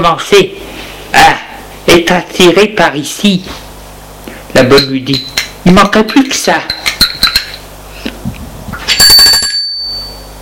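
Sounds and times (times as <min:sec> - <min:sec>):
speech: 0:00.0 - 0:01.4, 0:02.0 - 0:03.6, 0:04.6 - 0:07.0
bell ringing: 0:08.9 - 0:10.4.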